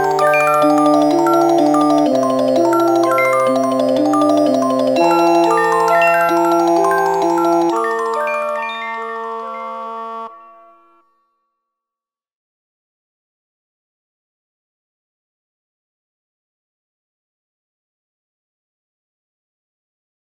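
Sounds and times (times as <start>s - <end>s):
slendro fractal music without detuned octaves: 0.0s - 11.0s.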